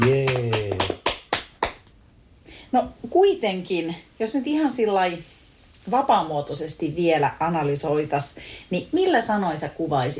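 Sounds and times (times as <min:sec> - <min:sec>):
applause: 0:00.0 - 0:01.9
speech: 0:02.7 - 0:10.1.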